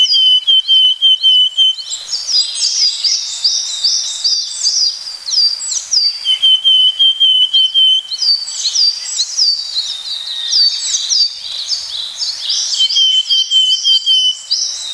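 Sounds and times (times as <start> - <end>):
willow tit calls: 0.0 - 14.9.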